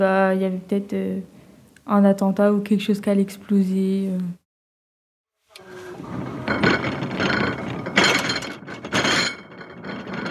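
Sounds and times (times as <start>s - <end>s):
speech: 0.0s - 4.4s
cart of dishes: 5.5s - 10.3s.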